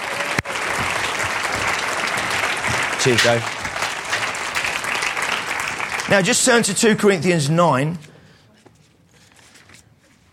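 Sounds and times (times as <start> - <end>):
audience applause: 0.0 - 7.1
speech: 3.0 - 3.6, 6.1 - 8.1.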